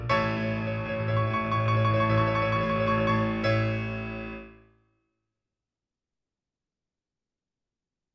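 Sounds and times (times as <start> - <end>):
backing track: 0.1 - 4.5.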